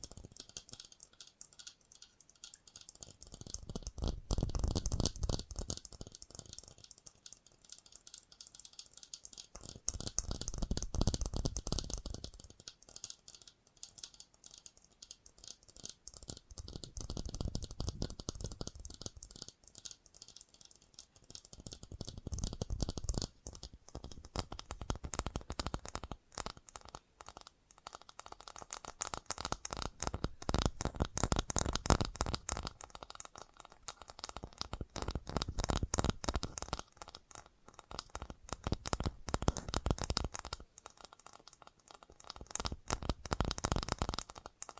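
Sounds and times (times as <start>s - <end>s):
fast tapping: 0.0s - 44.7s.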